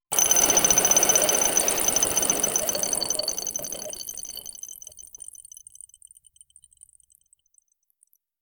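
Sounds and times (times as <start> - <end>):
quick playful bubble one-shot: 0.1 - 5.0.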